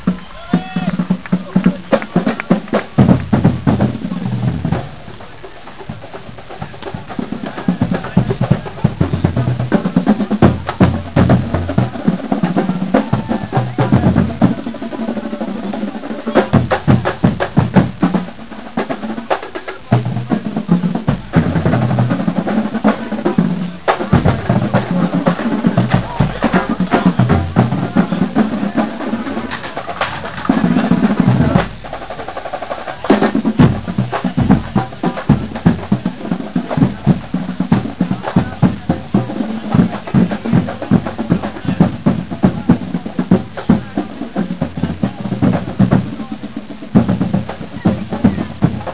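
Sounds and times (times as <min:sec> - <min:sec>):
music beat: 0:00.0 - 0:48.9.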